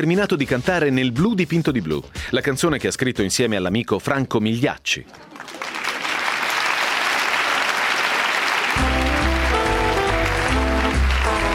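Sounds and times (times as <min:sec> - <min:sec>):
speech: 0:00.0 - 0:05.8
thunderous applause from a theatre audience: 0:05.5 - 0:11.5.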